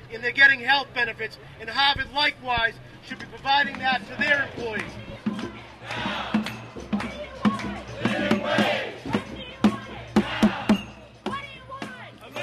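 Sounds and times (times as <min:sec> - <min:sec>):
speech: 0:00.1 - 0:06.4
sharp rhythmic claps or drum hits: 0:03.2 - 0:12.4
crowd of marchers chanting at rally: 0:03.8 - 0:12.4.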